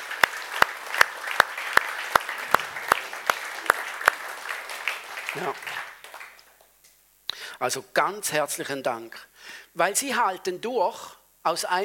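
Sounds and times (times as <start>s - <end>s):
audience applause: 0.0s - 6.7s
speech: 5.4s - 5.8s, 7.6s - 11.8s.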